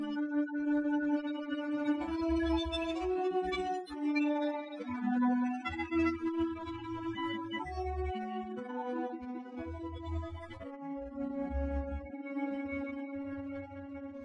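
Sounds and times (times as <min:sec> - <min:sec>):
extracted viola: 0:00.2 - 0:14.2.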